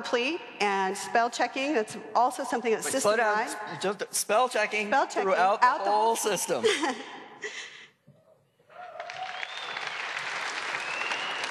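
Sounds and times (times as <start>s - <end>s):
speech: 0.0s - 7.5s
audience applause: 8.8s - 11.4s.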